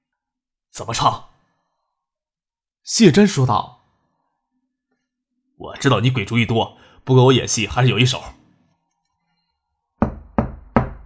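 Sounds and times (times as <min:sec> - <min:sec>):
speech: 0:00.8 - 0:01.3, 0:02.9 - 0:03.8, 0:05.6 - 0:08.4
knocking on an office door: 0:10.0 - 0:11.0.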